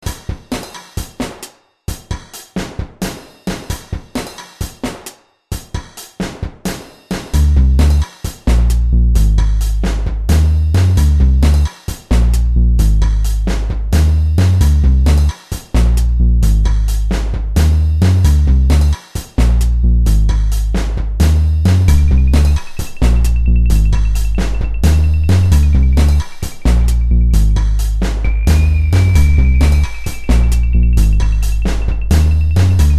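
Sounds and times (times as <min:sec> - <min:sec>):
dark beat: 0:07.4 - 0:32.9.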